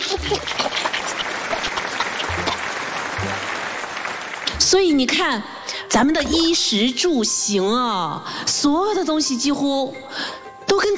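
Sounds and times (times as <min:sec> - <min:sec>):
audience applause: 0:00.0 - 0:04.7
speech: 0:04.7 - 0:10.9.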